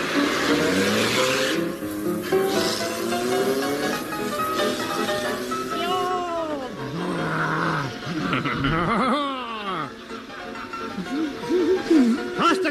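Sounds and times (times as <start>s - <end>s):
comedy sound effect of a vehicle speeding away at breakneck speed: 0.0s - 8.4s
laughter: 8.0s - 9.9s, 10.9s - 12.2s.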